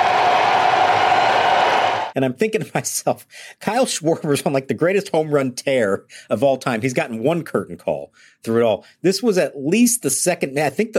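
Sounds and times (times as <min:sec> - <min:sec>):
stadium crowd cheering: 0:00.0 - 0:02.2
speech: 0:02.2 - 0:10.9.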